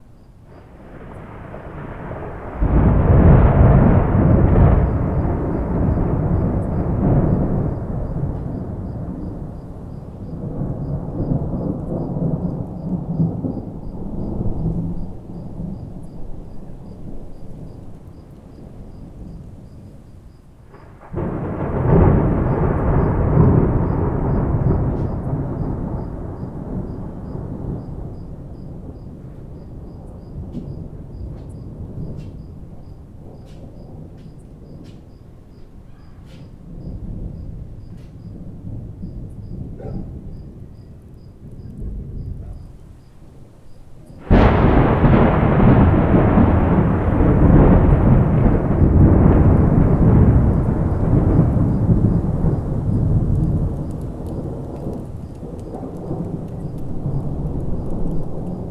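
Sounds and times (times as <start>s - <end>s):
thunderstorm: 0.0s - 58.6s.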